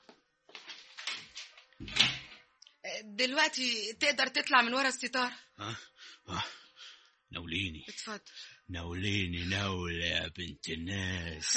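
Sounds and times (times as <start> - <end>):
door pushed shut with a thud: 1.8 - 2.4
speech: 3.1 - 6.6, 7.3 - 11.5.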